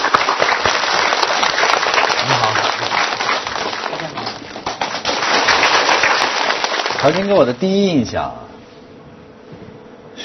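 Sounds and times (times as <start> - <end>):
audience applause: 0.0 - 7.6
speech: 7.0 - 8.4.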